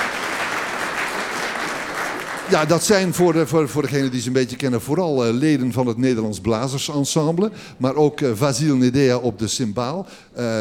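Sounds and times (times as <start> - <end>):
audience clapping welcoming musicians: 0.0 - 4.2
speech: 2.5 - 10.6.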